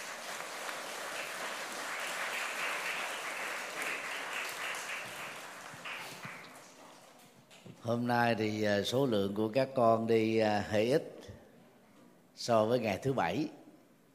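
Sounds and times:
audience applause: 0.0 - 7.0
speech: 7.9 - 11.2, 12.4 - 13.6.

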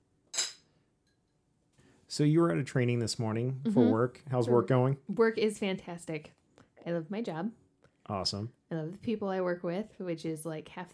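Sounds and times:
two glasses clinking in a toast: 0.3 - 1.2
speech: 2.1 - 10.9.

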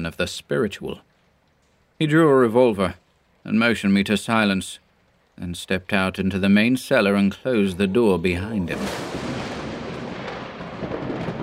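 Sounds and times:
speech: 0.0 - 1.1, 2.0 - 4.8, 5.4 - 9.2
thunder from a storm: 8.7 - 11.4.

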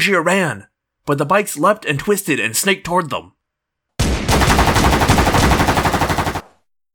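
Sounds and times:
speech: 0.0 - 3.4
automatic gunfire: 4.0 - 6.6.

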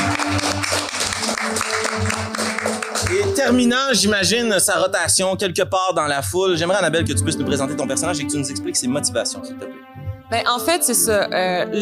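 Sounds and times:
audience applause: 0.0 - 3.9
speech: 3.4 - 11.8.

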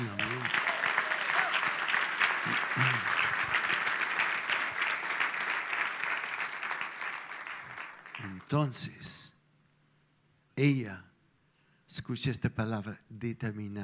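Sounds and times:
audience applause: 0.0 - 8.6
speech: 8.5 - 9.3, 10.6 - 11.1, 11.9 - 13.8.

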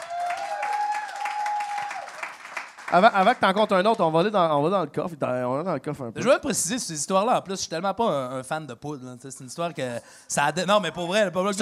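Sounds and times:
audience applause: 0.0 - 3.6
speech: 2.9 - 11.6.

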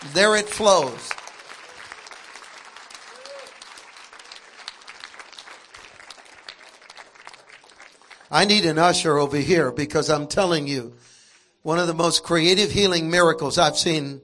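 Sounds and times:
speech: 0.0 - 1.2, 8.3 - 14.2
audience clapping: 0.0 - 8.9.

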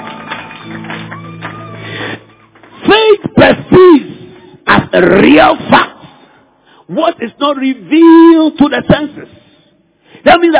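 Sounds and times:
audience clapping: 0.0 - 2.9
speech: 3.4 - 4.0, 5.0 - 5.9, 6.9 - 9.4, 10.2 - 10.5.

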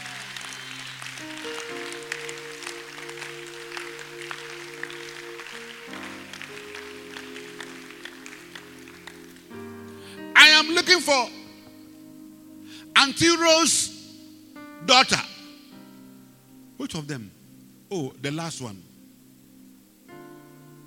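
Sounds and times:
audience clapping: 0.0 - 9.8
speech: 10.6 - 11.4, 13.0 - 14.0, 14.9 - 15.2, 16.9 - 18.9.

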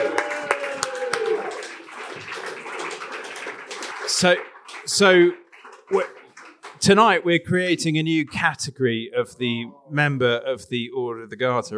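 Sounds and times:
audience applause: 0.0 - 7.2
speech: 4.2 - 6.2, 6.8 - 11.7.

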